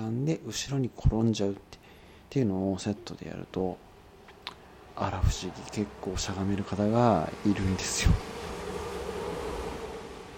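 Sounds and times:
speech: 0.2 - 3.9, 5.0 - 8.4
large vehicle passing in the rain: 5.4 - 10.3.

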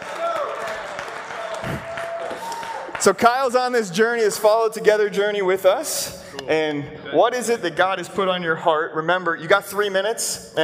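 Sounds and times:
audience cheering and clapping: 0.0 - 3.6
speech: 1.6 - 1.9, 3.0 - 10.6.

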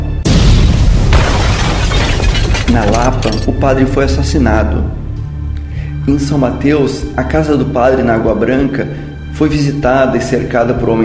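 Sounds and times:
bomb explosion: 0.2 - 3.0
speech: 2.7 - 5.0, 6.1 - 11.0.

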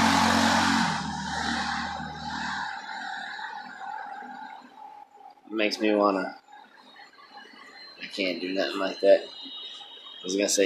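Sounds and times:
motorcycle passing by: 0.0 - 2.8
speech: 5.6 - 6.4, 8.1 - 9.6, 10.2 - 10.6.

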